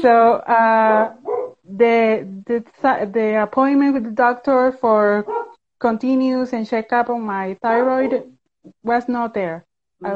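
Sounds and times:
speech: 0.0 - 10.1
dog howl-like bark: 1.2 - 1.6, 5.3 - 5.6.

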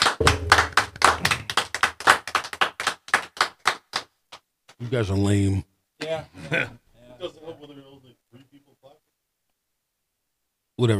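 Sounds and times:
crowd round of applause: 0.0 - 3.8
speech: 4.8 - 8.4, 10.8 - 10.9.

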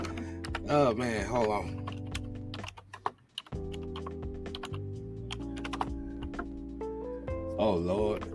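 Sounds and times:
typing on a computer keyboard: 0.0 - 6.6
speech: 0.7 - 1.9, 7.6 - 8.3.

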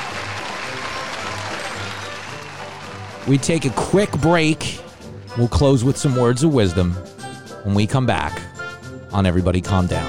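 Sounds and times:
crowd whooping and shouting: 0.0 - 4.2
crowd clapping: 0.0 - 5.1
speech: 3.2 - 8.4, 9.1 - 10.0.

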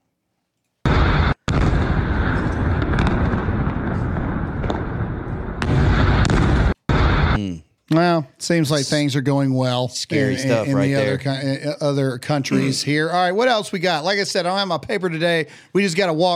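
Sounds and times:
missile strike explosion boom: 0.9 - 7.5
speech: 7.9 - 16.3.

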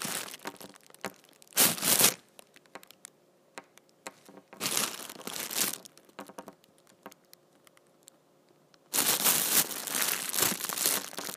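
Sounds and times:
big trash bag being crumpled and handled: 0.0 - 2.2, 4.5 - 6.1, 8.9 - 11.3
quieter scattered crackles and taps: 0.1 - 1.6, 2.2 - 9.0, 10.4 - 11.3.

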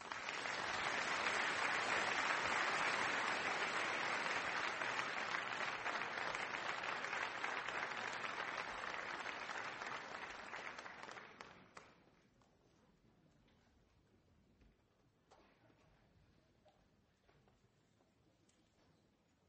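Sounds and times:
audience applauding: 0.0 - 11.9.

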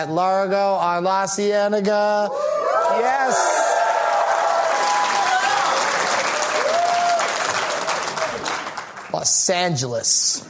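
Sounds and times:
speech: 0.0 - 3.7, 9.2 - 10.4
faint whoops: 2.4 - 7.4
live audience applause: 2.8 - 9.4.

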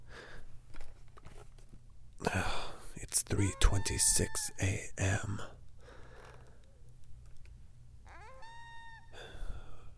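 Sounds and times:
distant coyotes howling in the woods: 3.3 - 4.6, 8.1 - 9.3
speech: 3.3 - 5.6.

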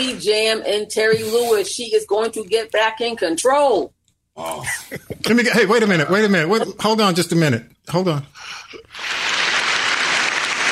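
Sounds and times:
speech: 0.0 - 9.2
crowd cheering: 9.0 - 10.7.

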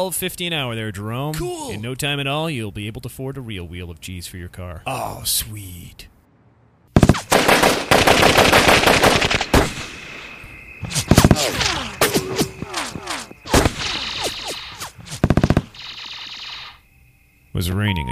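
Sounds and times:
speech: 0.0 - 6.1, 10.8 - 11.2, 17.6 - 18.1
machine gun fire: 7.0 - 9.9, 13.0 - 16.7.

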